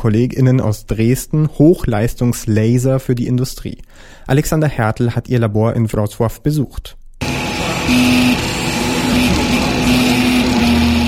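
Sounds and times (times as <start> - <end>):
speech: 0.0 - 7.0, 7.9 - 8.6
3D printer layering plastic with a steady mechanical hum: 7.2 - 11.0.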